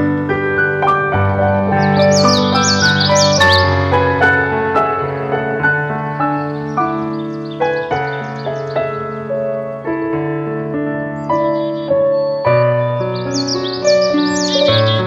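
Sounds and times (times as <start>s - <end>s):
piano playing: 0.0s - 15.0s
common yellowthroat singing: 1.4s - 10.0s, 10.6s - 15.0s.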